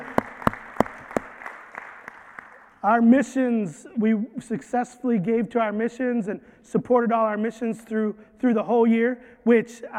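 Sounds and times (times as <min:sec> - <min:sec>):
scattered audience claps: 0:00.0 - 0:02.8
speech: 0:02.8 - 0:09.9.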